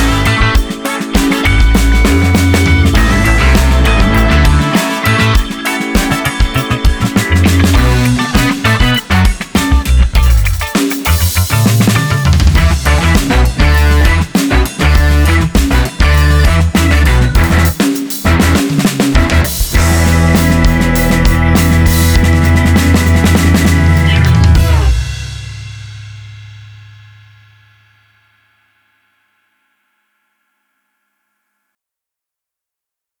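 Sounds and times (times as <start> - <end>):
bass trio playing: 0.0 - 25.6.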